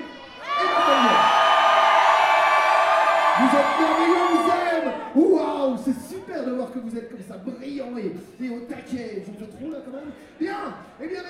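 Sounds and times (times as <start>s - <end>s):
crowd shouting and cheering on a countdown: 0.0s - 6.9s.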